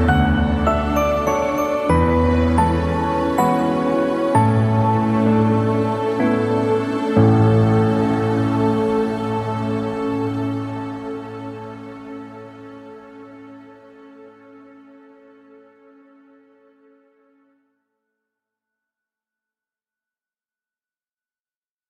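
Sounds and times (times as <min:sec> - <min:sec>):
piano: 0:00.0 - 0:17.4.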